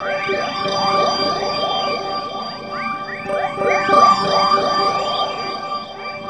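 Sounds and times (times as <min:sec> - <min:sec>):
guitar textures: 0:00.0 - 0:06.2.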